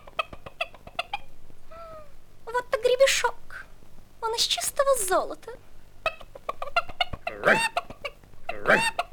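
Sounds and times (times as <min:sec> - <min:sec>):
hen clucking loudly: 0:00.0 - 0:01.3, 0:06.0 - 0:09.1
speech: 0:04.4 - 0:05.7, 0:07.4 - 0:07.8, 0:08.7 - 0:09.0.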